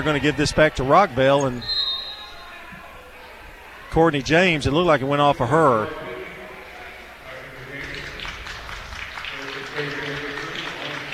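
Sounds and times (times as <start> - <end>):
speech: 0.0 - 1.8, 3.9 - 6.1, 9.8 - 10.0
Rockvale crowd applauding a player: 7.3 - 11.1.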